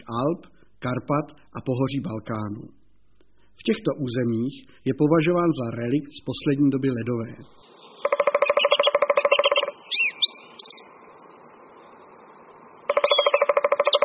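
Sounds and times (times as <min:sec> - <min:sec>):
speech: 0:00.1 - 0:02.8, 0:03.6 - 0:07.7
three-toed woodpecker drumming: 0:07.4 - 0:10.8, 0:12.8 - 0:14.0.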